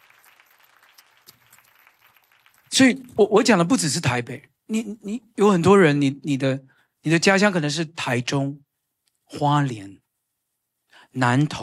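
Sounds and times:
audience clapping hands: 0.0 - 3.6
speech: 2.8 - 8.6, 9.3 - 10.0, 11.1 - 11.6.

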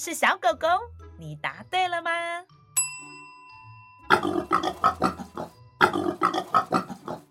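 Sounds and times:
speech: 0.0 - 2.6
piglet: 4.1 - 7.2.

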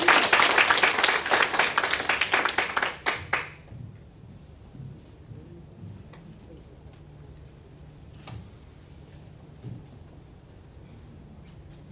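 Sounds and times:
audience applause: 0.0 - 3.6.

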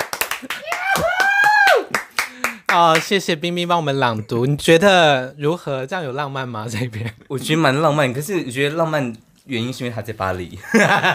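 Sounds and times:
hands clapping in a short burst of applause: 0.0 - 3.2
speech: 2.7 - 11.1.

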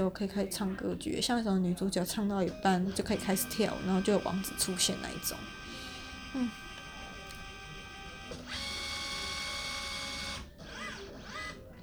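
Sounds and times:
speech: 0.0 - 5.6, 6.3 - 6.6
scanner scanning a document: 2.8 - 11.8.

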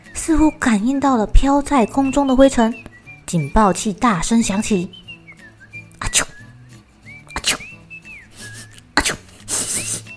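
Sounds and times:
speech: 0.2 - 5.0
people sneezing in a classroom: 6.0 - 6.4, 7.3 - 10.1.

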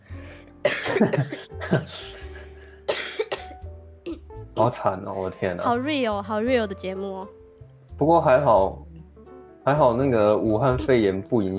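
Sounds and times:
speech: 0.6 - 2.2, 4.6 - 7.4, 8.0 - 8.9, 9.6 - 11.5
person coughing: 0.6 - 4.3.

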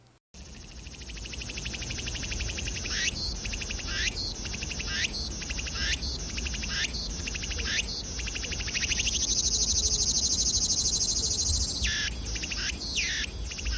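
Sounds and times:
buzzing insect chorus: 0.4 - 13.7
bird calls in a mangrove forest: 1.0 - 13.7.

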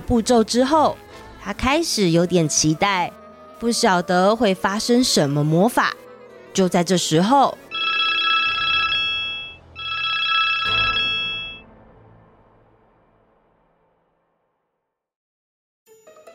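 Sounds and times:
speech: 0.1 - 6.0, 6.6 - 7.6
home telephone ringing: 7.7 - 11.6.

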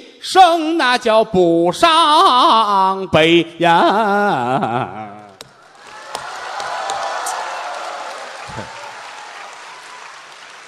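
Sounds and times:
speech: 0.2 - 5.2
audience applause: 5.6 - 10.6.

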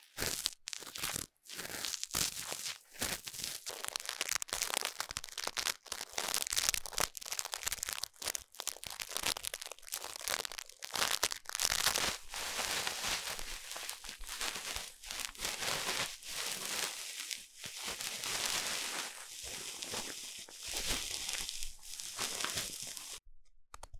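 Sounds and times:
ear cleaning scrapes and crunches: 0.0 - 23.2
ear cleaning scratching and crinkling: 8.5 - 23.2.

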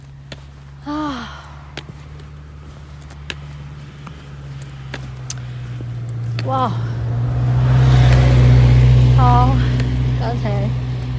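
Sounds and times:
Tataka shuttle bus to Yushan driving past: 0.0 - 11.1
speech: 6.5 - 6.9.

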